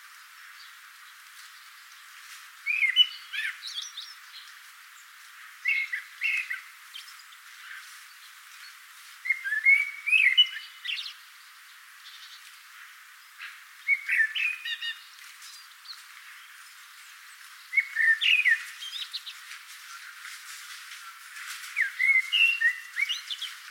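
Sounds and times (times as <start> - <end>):
Common blackbird singing: 2.6 - 8.3, 9.2 - 12.4, 13.3 - 20.3, 20.9 - 23.6.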